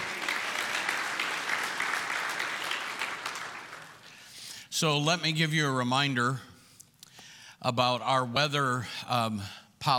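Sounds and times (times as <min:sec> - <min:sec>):
church congregation clapping hands: 0:00.0 - 0:04.5
speech: 0:04.8 - 0:06.5, 0:07.6 - 0:09.9.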